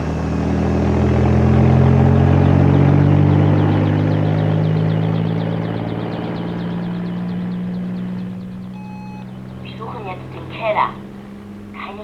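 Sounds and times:
helicopter taking off: 0.0 - 12.0.

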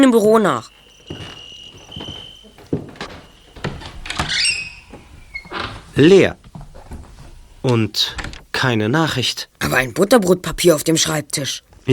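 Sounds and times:
speech: 0.0 - 1.3, 6.0 - 6.4, 7.6 - 11.9
cricket chirping: 0.0 - 6.0
shuffling footsteps: 0.0 - 7.9
door opening: 0.2 - 8.6.

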